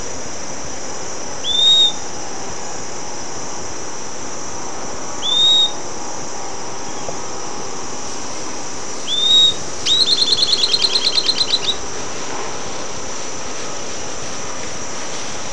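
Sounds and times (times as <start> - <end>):
high-pitched insect drone: 0.0 - 15.5
bird calling with upslurred whistles and trill: 1.4 - 2.0, 5.2 - 5.8, 9.0 - 11.8.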